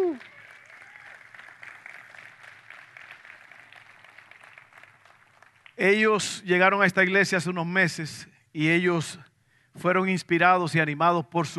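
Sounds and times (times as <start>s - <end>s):
vocal whoop: 0.0s - 1.2s
audience applause: 0.0s - 5.8s
speech: 5.8s - 11.5s.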